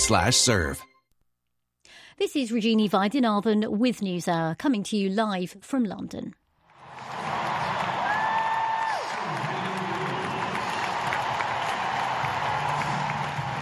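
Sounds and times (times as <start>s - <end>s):
speech: 0.1s - 0.9s, 2.2s - 6.4s
large tennis crowd cheering and applauding: 6.7s - 13.6s.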